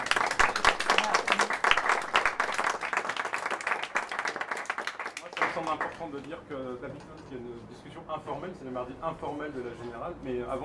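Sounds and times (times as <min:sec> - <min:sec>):
audience applause: 0:00.0 - 0:06.1
speech: 0:05.6 - 0:10.6.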